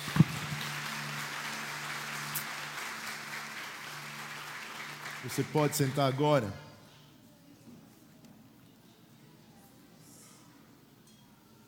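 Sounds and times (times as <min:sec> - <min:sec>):
audience clapping: 0:00.0 - 0:06.6
speech: 0:05.2 - 0:06.6.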